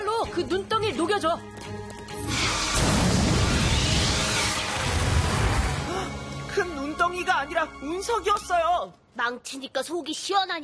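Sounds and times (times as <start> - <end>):
speech: 0.4 - 2.6, 6.6 - 10.6
superpower sonic bomb blast: 2.4 - 5.8.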